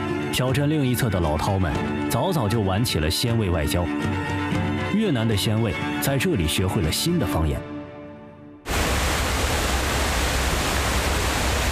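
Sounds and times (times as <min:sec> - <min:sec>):
speech: 0:00.4 - 0:07.7
roaring Detian waterfall on the China-Vietnam border: 0:08.7 - 0:11.7.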